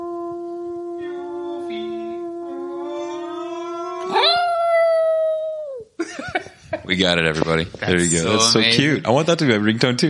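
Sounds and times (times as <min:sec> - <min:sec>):
dog howling: 0:00.0 - 0:05.9
speech: 0:06.9 - 0:10.0.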